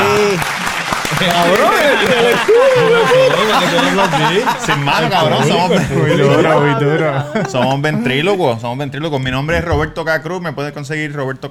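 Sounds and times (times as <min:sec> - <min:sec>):
applause: 0:00.0 - 0:04.8
laughter: 0:00.0 - 0:10.0
speech: 0:01.2 - 0:11.4.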